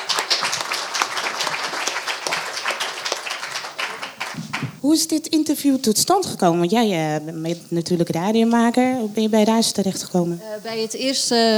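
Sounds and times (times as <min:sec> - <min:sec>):
crowd applauding: 0:00.0 - 0:04.8
speech: 0:04.8 - 0:11.5.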